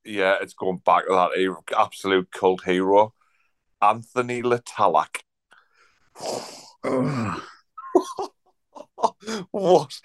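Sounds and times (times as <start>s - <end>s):
speech: 0.1s - 3.2s, 3.8s - 5.3s, 6.2s - 8.3s, 9.2s - 10.0s
person groaning: 6.8s - 7.6s.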